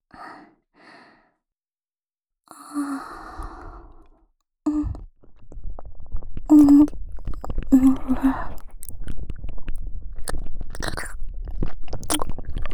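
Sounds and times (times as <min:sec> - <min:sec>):
deep ear licking in the right ear: 0:04.9 - 0:12.7.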